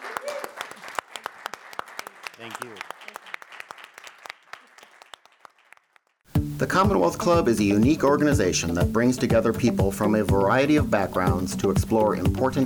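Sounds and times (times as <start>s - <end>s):
audience round of applause: 0.0s - 6.2s
speech: 2.4s - 3.0s, 6.6s - 12.6s.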